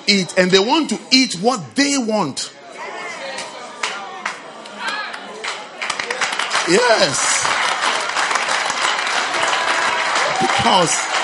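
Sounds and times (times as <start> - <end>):
speech: 0.1 - 2.6, 6.7 - 7.5, 10.6 - 11.1
audience clapping: 3.8 - 11.2.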